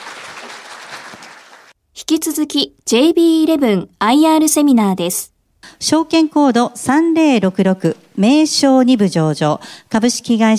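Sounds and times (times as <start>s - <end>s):
audience applause: 0.0s - 1.8s
speech: 2.1s - 10.5s.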